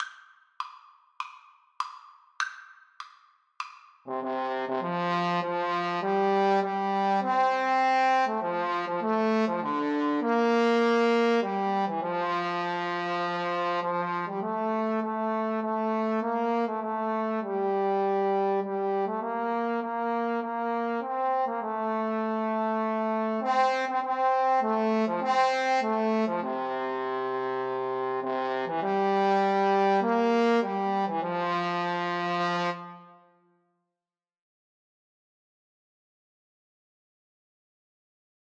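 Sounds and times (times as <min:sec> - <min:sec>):
trombone duet: 0:04.1 - 0:33.0.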